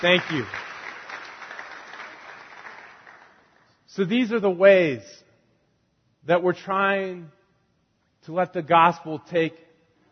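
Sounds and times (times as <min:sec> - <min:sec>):
speech: 0:00.0 - 0:00.6, 0:04.0 - 0:05.2, 0:06.2 - 0:07.4, 0:08.2 - 0:09.6
audience applause welcoming new families: 0:00.0 - 0:03.6.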